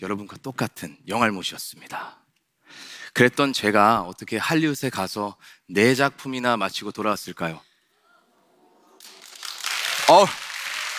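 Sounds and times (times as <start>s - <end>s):
speech: 0.0s - 7.7s, 10.1s - 10.4s
audience applause: 9.0s - 10.9s.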